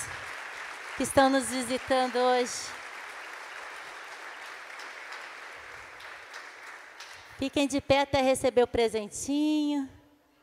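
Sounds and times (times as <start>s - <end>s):
audience applauding: 0.0s - 7.4s
speech: 1.0s - 2.8s, 7.4s - 10.0s.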